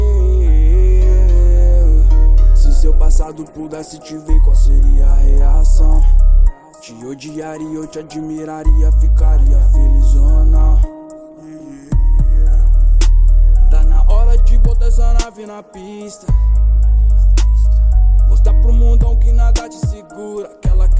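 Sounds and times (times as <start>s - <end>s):
deep bass: 0.0s - 3.2s, 4.3s - 6.5s, 8.7s - 10.9s, 12.0s - 15.2s, 16.3s - 19.6s, 20.7s - 20.9s.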